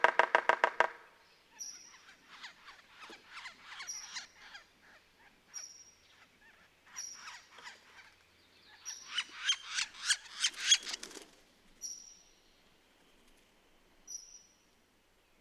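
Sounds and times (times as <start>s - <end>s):
Red-naped sapsucker calling: 0.0s - 11.0s.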